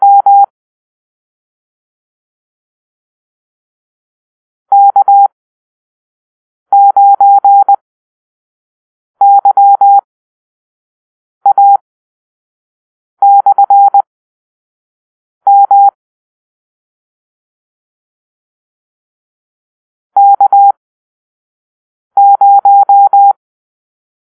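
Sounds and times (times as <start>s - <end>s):
morse code call-sign beeps: 0.0s - 0.5s, 4.7s - 5.3s, 6.7s - 7.8s, 9.2s - 10.0s, 11.5s - 11.8s, 13.2s - 14.0s, 15.5s - 16.0s, 20.2s - 20.7s, 22.2s - 23.4s.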